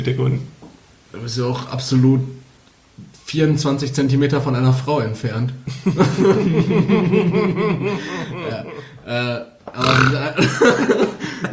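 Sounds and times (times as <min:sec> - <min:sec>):
speech: 0:00.0 - 0:02.4, 0:03.0 - 0:11.5
laughter: 0:05.7 - 0:09.4, 0:10.2 - 0:11.5
lustful grunting: 0:07.9 - 0:10.6.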